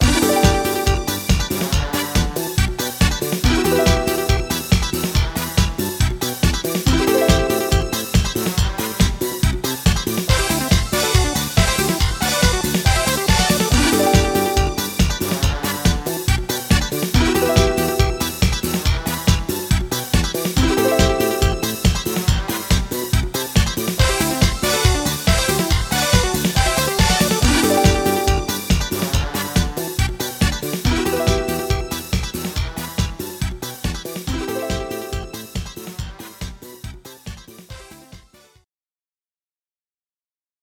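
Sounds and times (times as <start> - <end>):
disco music: 0.0 - 38.1.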